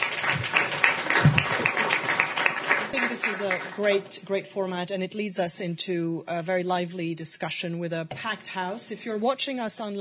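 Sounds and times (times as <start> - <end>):
audience applause following two presentations: 0.0 - 4.1
speech: 3.4 - 10.0.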